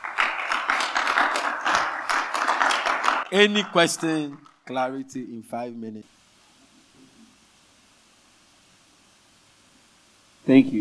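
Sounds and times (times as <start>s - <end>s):
audience clapping: 0.0s - 5.2s
speech: 3.3s - 6.2s, 10.5s - 10.8s.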